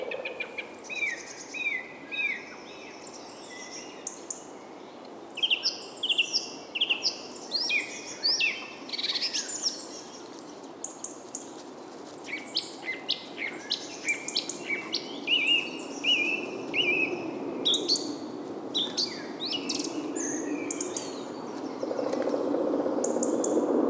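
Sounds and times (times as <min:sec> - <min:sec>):
birds: 0:00.0 - 0:23.8.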